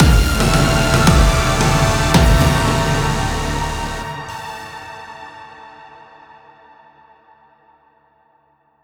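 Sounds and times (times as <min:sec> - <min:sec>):
smooth musical stinger: 0:00.0 - 0:04.4.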